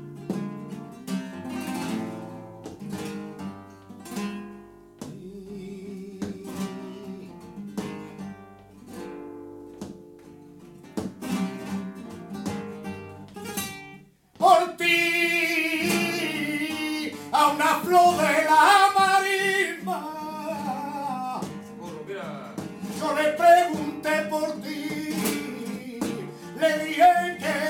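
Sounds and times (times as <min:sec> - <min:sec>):
flamenco guitar: 0:00.0 - 0:27.6.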